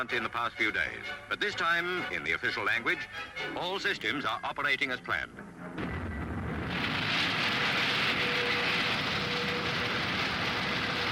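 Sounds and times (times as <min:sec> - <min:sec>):
speech: 0:00.0 - 0:05.8
rocket launch roar: 0:05.8 - 0:11.1.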